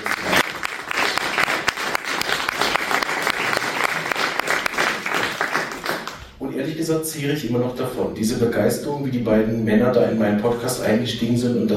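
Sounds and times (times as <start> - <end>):
audience applause: 0.0 - 6.3
speech: 6.7 - 11.7.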